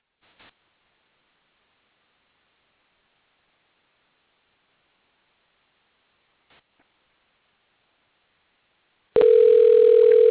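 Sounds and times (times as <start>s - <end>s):
telephone ringing tone: 9.2s - 10.3s.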